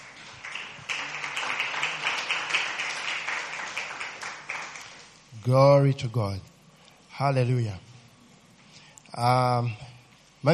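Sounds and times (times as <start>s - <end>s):
audience clapping hands: 0.0s - 5.3s
speech: 5.4s - 6.5s, 7.2s - 7.9s, 9.2s - 10.5s.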